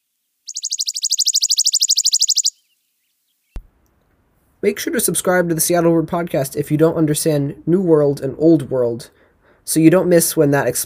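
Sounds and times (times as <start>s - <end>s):
chipping sparrow trilling: 0.5s - 2.8s
speech: 4.6s - 10.8s.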